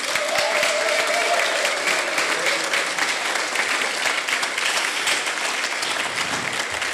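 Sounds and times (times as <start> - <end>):
murmur of voices: 0.0 - 5.5
audience applause: 0.0 - 6.9.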